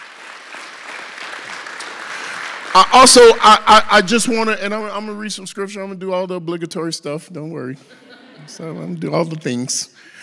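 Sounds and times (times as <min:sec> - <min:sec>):
audience round of applause: 0:00.0 - 0:03.4
speech: 0:02.8 - 0:10.2
laughter: 0:07.8 - 0:09.4.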